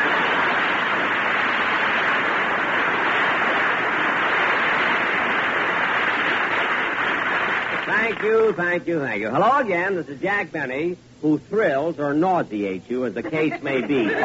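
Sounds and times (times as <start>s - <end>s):
studio audience applause: 0.0s - 8.8s
speech: 8.2s - 14.2s
laughter: 13.2s - 14.2s.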